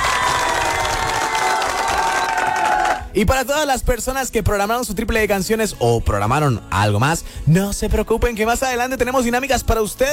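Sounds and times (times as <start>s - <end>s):
crowd applause: 0.0s - 3.1s
speech: 3.2s - 10.1s.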